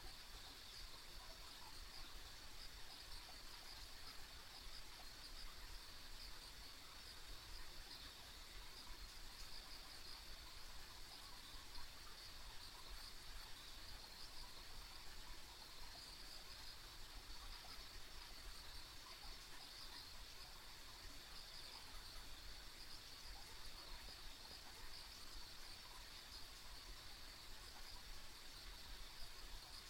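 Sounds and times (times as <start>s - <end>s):
insects chirping on a country road: 0.0s - 29.8s.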